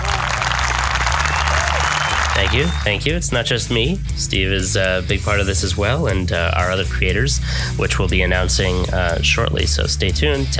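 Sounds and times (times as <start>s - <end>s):
applause: 0.0s - 3.0s
speech: 2.4s - 10.5s.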